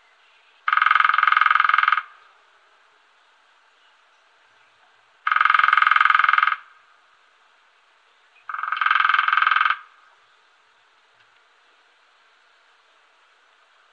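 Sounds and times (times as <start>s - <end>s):
lesser spotted woodpecker drumming in short rapid tapping rolls: 0.6s - 2.3s, 5.2s - 6.8s, 8.4s - 10.2s.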